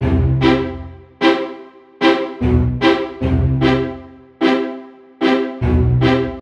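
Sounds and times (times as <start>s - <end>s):
strings: 0.0s - 6.4s.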